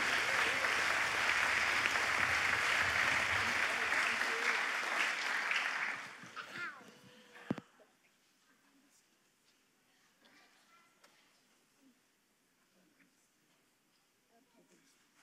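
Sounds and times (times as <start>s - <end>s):
audience clapping: 0.0s - 6.6s.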